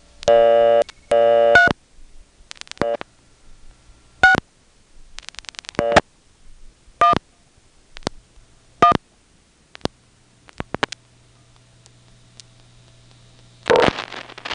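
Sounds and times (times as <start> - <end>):
telephone buzzing tone bursts on a Bell Canada line: 0.0 - 1.8, 2.6 - 3.0, 5.2 - 6.1, 13.4 - 14.5
telephone dial clicks: 0.2 - 1.8, 2.5 - 3.1, 4.2 - 4.4, 5.2 - 6.0, 7.0 - 7.2, 9.7 - 14.5.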